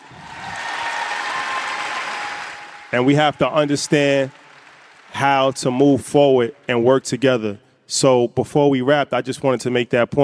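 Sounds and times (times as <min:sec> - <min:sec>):
audience clapping: 0:00.0 - 0:07.2
speech: 0:02.9 - 0:04.4, 0:05.1 - 0:10.2.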